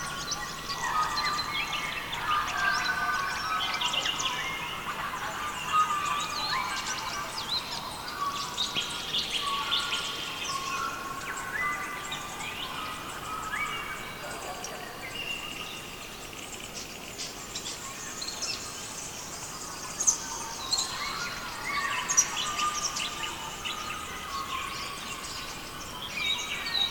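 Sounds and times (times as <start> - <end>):
birdsong: 0.0 - 26.8.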